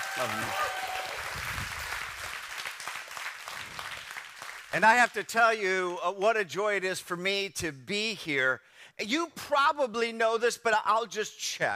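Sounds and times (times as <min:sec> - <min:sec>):
church service audience applauding to welcome a pastor: 0:00.0 - 0:04.8
speech: 0:00.2 - 0:01.0, 0:04.7 - 0:11.7.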